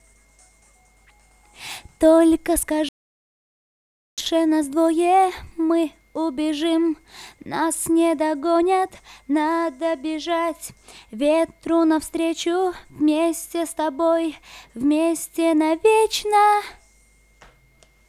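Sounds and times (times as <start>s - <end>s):
a cappella vocals: 4.2s - 16.9s.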